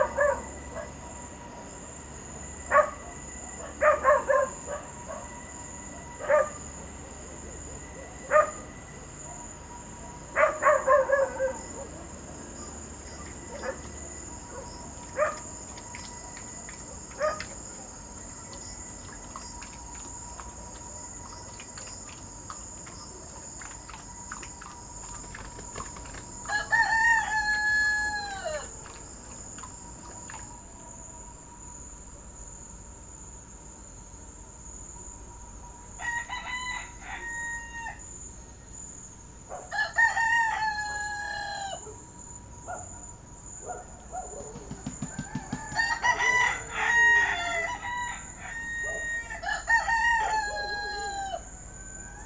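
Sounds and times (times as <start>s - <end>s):
roosters crowing: 0.0s - 0.8s, 26.4s - 28.8s, 36.0s - 38.2s, 39.7s - 42.0s, 44.6s - 52.2s
steady high insect drone: 0.0s - 52.2s.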